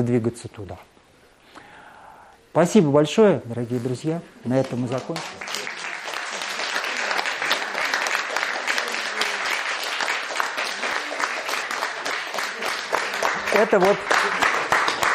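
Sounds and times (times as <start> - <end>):
speech: 0.0 - 0.9, 2.6 - 5.6, 13.5 - 14.4
audience applause after a lecture: 4.6 - 15.1.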